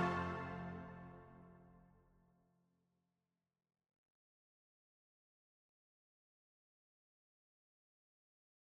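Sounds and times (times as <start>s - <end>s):
brass ensemble of 11 instruments playing a partita: 0.0s - 1.2s.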